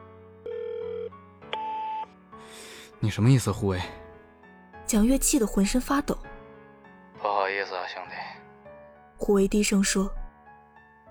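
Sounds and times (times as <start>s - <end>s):
telephone ringing: 0.4s - 2.1s
speech: 3.0s - 4.0s, 4.9s - 6.3s, 9.2s - 10.2s.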